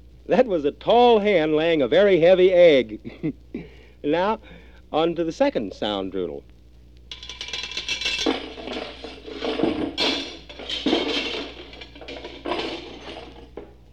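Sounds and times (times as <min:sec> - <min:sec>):
speech: 0:00.3 - 0:06.5
metal armor plates clanking: 0:07.1 - 0:13.7.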